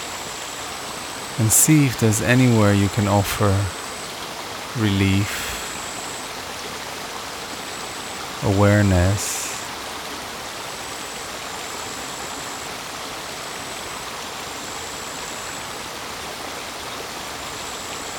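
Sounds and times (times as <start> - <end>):
running water of a stream: 0.0 - 18.1
speech: 1.4 - 3.8, 4.8 - 5.5, 8.4 - 9.3.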